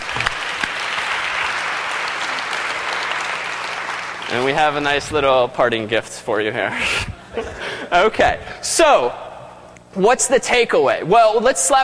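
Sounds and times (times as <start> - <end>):
audience applause: 0.0 - 5.0
speech: 4.3 - 9.2, 10.0 - 11.8.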